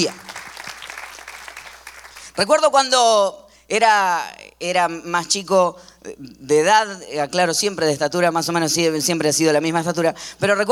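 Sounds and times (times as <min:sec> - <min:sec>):
speech: 0:00.0 - 0:00.2, 0:02.4 - 0:10.7
audience applause: 0:00.0 - 0:02.4.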